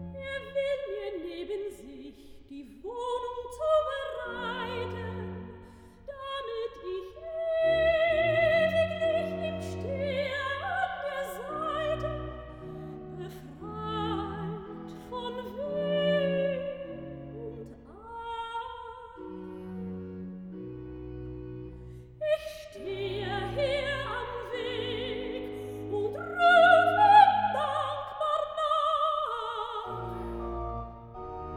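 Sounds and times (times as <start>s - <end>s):
soprano singing recitative: 0.2s - 19.9s, 22.2s - 30.8s.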